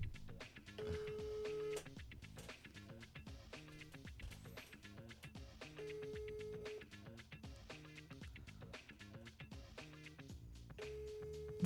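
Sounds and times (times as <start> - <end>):
busy rhythmic background: 0.0 - 11.6
telephone ringback tones with the handset held up to a microphone: 0.8 - 1.9, 5.7 - 6.9, 10.8 - 11.6.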